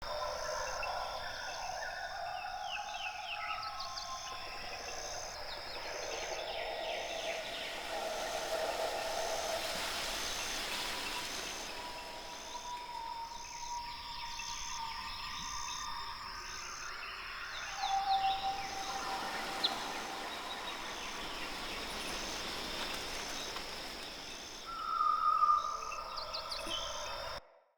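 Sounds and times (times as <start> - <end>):
daytime ambience loop in glades: 0.0 - 27.4.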